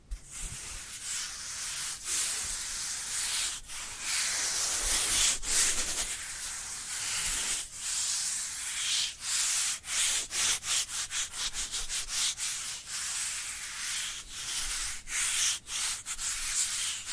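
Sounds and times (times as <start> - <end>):
dry hands rubbing together: 0.1 - 17.1.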